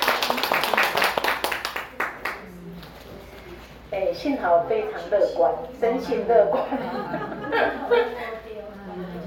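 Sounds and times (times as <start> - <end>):
audience applause: 0.0 - 2.4
speech: 4.2 - 8.1
laughter: 6.5 - 8.4.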